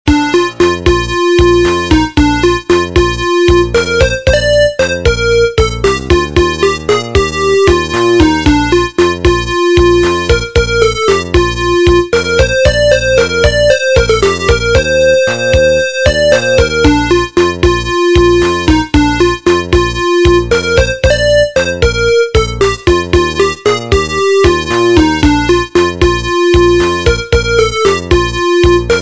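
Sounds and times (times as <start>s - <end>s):
instrumental music: 0.0s - 29.0s.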